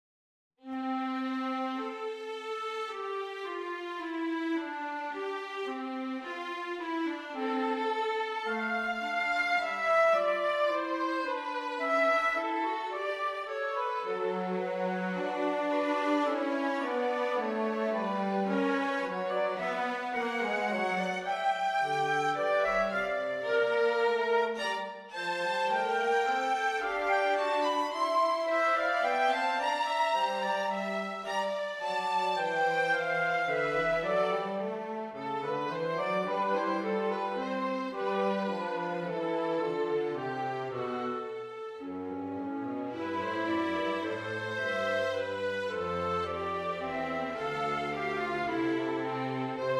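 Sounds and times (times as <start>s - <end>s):
strings: 0.7s - 49.7s.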